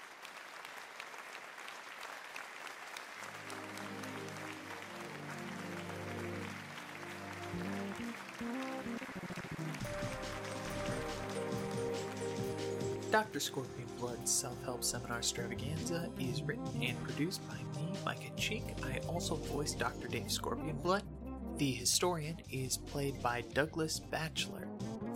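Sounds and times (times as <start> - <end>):
crowd applause: 0.0 - 13.2
low musical tones: 3.3 - 25.1
speech: 13.1 - 24.6.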